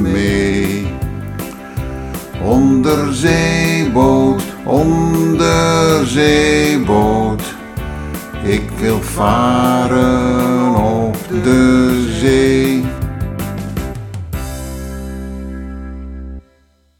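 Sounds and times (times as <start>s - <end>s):
music on a submarine: 0.0s - 16.9s
singing on a submarine: 2.4s - 7.6s, 8.4s - 13.0s.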